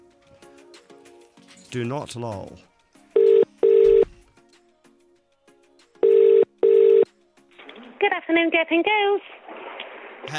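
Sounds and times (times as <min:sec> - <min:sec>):
speech: 0:01.7 - 0:02.7, 0:08.3 - 0:09.3
telephone ringing tone: 0:03.2 - 0:04.1, 0:06.0 - 0:07.1.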